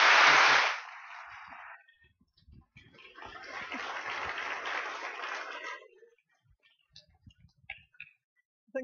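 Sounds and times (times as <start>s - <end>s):
audience applause: 0.0s - 1.4s, 3.0s - 6.0s.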